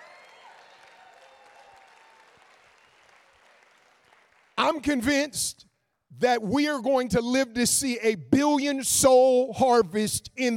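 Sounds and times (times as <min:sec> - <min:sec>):
faint vocal tones and whoops: 0:00.0 - 0:03.1
crowd applause: 0:00.0 - 0:04.9
speech: 0:04.6 - 0:10.5.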